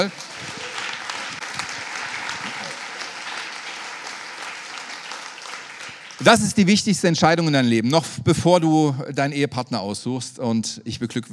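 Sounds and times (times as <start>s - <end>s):
speech: 0.0s - 0.5s, 6.2s - 11.3s
scattered cheers and voices: 0.0s - 6.4s
audience applause: 0.0s - 6.8s.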